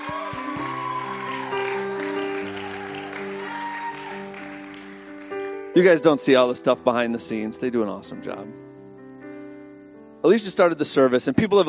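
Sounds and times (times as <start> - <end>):
audience clapping: 0.0 - 5.6
speech: 5.8 - 8.7, 10.2 - 11.6.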